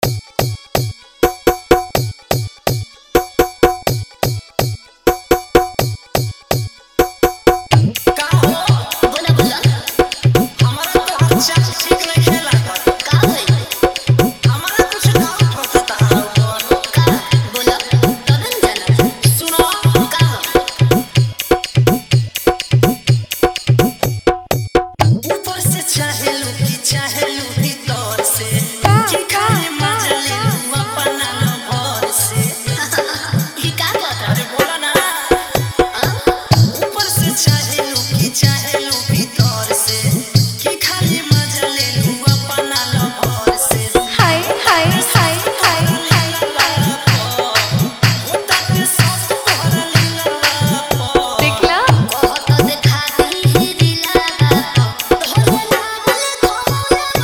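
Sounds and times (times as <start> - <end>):
Bhojpuri Birha style DJ remix song: 0.0 - 57.2.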